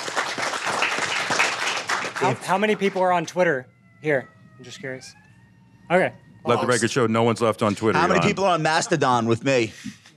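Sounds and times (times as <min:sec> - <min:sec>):
audience applause: 0:00.0 - 0:03.2
speech: 0:02.2 - 0:05.2, 0:05.9 - 0:10.0.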